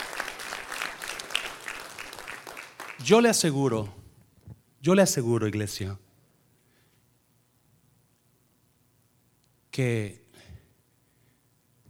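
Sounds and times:
loud audience applause: 0:00.0 - 0:03.2
speech: 0:03.0 - 0:04.0, 0:04.8 - 0:06.0, 0:09.8 - 0:10.2.

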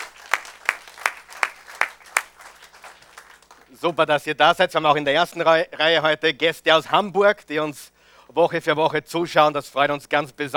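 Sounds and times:
audience applause: 0:00.0 - 0:04.0
speech: 0:03.7 - 0:10.5.

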